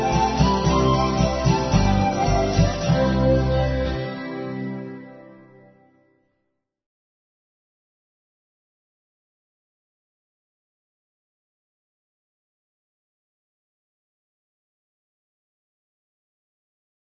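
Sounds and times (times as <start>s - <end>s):
Christmas carol: 0.0s - 5.9s.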